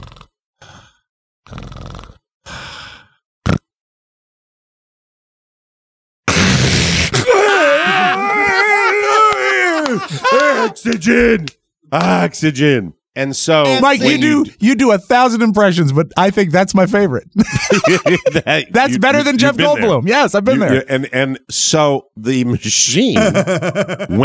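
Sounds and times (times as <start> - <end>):
man's strained snoring groan imitating sleep apnea: 0.0 - 2.2, 6.3 - 7.3
man's voice imitating sleep apnea breathing: 0.0 - 3.2
laughter: 7.5 - 11.5, 13.7 - 14.4, 17.4 - 20.9, 23.0 - 24.2
speech: 10.7 - 24.2.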